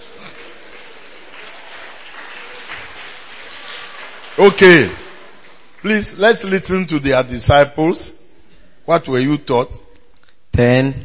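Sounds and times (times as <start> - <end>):
audience clapping: 0.0 - 7.0
speech: 4.4 - 5.0, 5.8 - 8.2, 8.9 - 9.8, 10.6 - 11.0.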